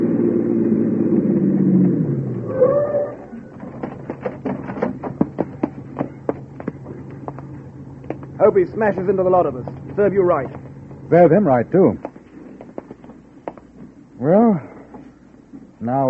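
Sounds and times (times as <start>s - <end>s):
car engine as car pulls up: 0.0s - 15.8s
short squeal as the car stops: 2.4s - 3.6s
sharp ticking clicks from idling motor: 3.7s - 12.3s
speech: 8.5s - 12.1s, 14.2s - 14.7s, 15.8s - 16.0s.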